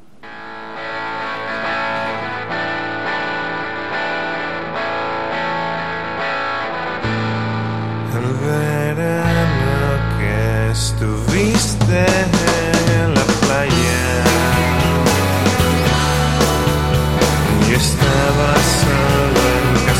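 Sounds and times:
rock song single from LP: 0.2s - 19.9s.

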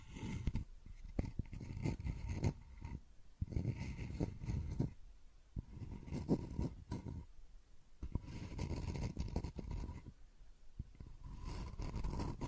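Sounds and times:
scratching and tracing: 0.0s - 5.0s, 5.6s - 7.3s, 8.0s - 10.1s, 10.9s - 12.4s.

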